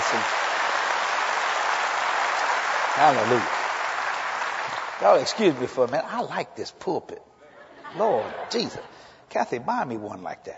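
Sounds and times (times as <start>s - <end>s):
audience applause: 0.0s - 5.9s
speech: 0.1s - 0.4s, 3.0s - 3.6s, 5.0s - 7.3s, 7.9s - 10.5s
laughter: 7.4s - 9.0s.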